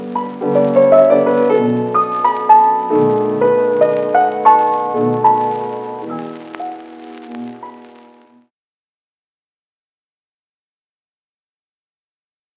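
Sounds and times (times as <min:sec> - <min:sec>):
piano: 0:00.0 - 0:08.5.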